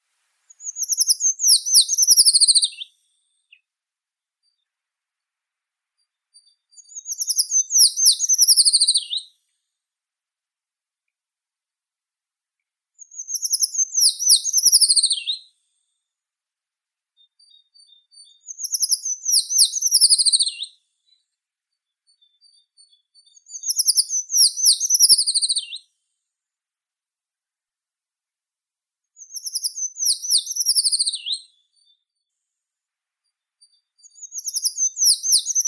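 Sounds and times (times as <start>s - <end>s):
Eurasian treecreeper Certhia familiaris calling: 0.5s - 2.9s, 6.4s - 9.2s, 13.2s - 15.4s, 18.4s - 20.7s, 23.4s - 25.8s, 29.2s - 31.4s, 34.0s - 35.6s.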